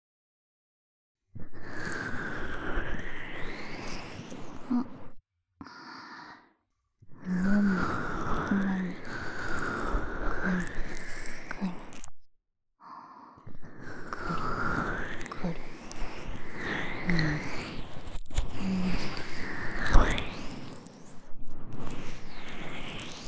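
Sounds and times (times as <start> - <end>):
ASMR ear massage sounds on the right side: 1.4 - 5.2, 7.1 - 12.1, 13.5 - 23.2.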